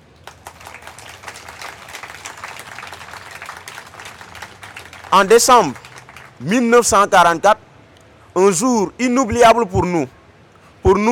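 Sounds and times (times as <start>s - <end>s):
audience applause: 0.0s - 6.5s
speech: 5.1s - 5.8s, 6.4s - 7.6s, 8.4s - 10.2s, 10.9s - 11.0s.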